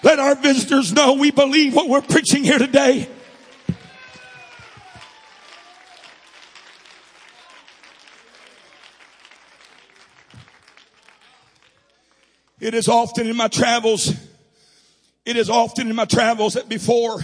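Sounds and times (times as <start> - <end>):
voices cheering: 0.0 - 12.0
audience clapping hands: 0.0 - 12.8
speech: 0.1 - 3.2, 12.6 - 14.3, 15.2 - 17.2.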